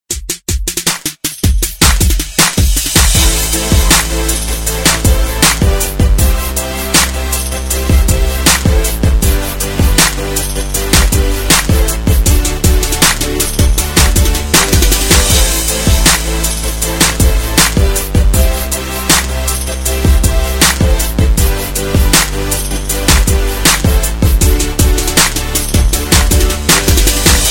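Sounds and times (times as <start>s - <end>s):
hip hop beat: 0.1s - 27.4s.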